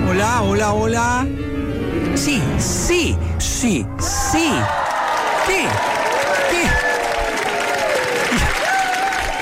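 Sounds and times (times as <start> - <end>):
speech: 0.2 - 1.5, 2.1 - 4.9, 5.5 - 6.8
audience applause welcoming a performer onto the stage: 4.3 - 9.3.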